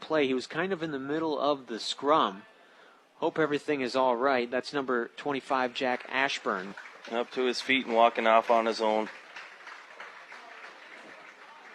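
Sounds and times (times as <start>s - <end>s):
speech: 0.1s - 2.5s, 3.2s - 9.2s
fans clapping at a high school football game: 5.6s - 11.7s.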